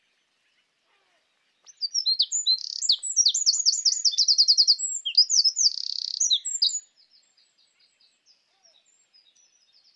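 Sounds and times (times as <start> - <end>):
Eurasian wren song: 1.6 - 7.3.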